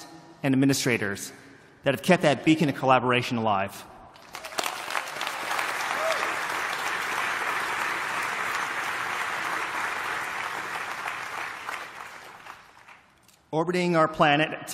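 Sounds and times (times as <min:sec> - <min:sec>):
speech: 0:00.4 - 0:03.9, 0:13.5 - 0:14.7
audience applause: 0:04.2 - 0:13.1.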